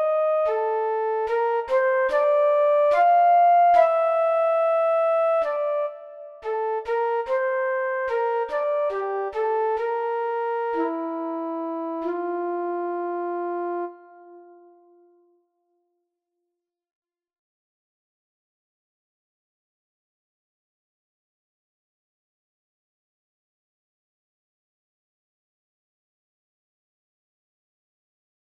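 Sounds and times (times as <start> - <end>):
flute: 0.0 - 15.0.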